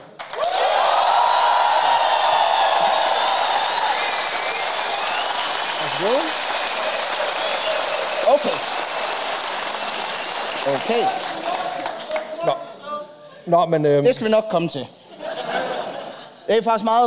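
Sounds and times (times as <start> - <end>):
audience applause: 0.0 - 12.4
whoops and cheers: 0.3 - 8.6
speech: 10.9 - 11.2, 13.5 - 15.0, 16.5 - 17.0
laughter: 15.0 - 16.6.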